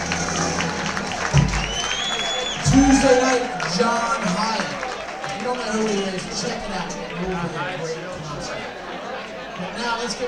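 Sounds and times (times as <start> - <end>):
audience applauding and cheering for a band: 0.0 - 10.2
speech: 2.9 - 4.6, 5.5 - 8.2, 9.7 - 10.2.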